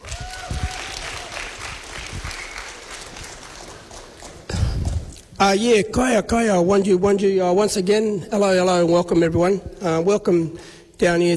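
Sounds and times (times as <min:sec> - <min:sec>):
audience applauding dancers at a community gathering in Rockingham: 0:00.0 - 0:05.3
speech: 0:05.4 - 0:11.3.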